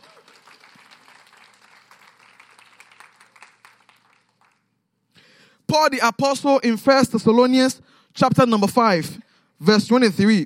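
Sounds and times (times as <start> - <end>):
audience clapping: 0.0 - 4.9
speech: 5.7 - 10.4.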